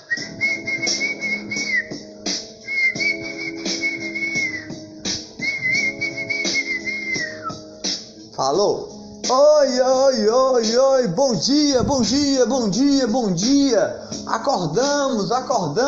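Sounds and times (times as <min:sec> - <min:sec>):
person whistling bird-like songs: 0:00.0 - 0:07.7
speech: 0:08.4 - 0:15.8.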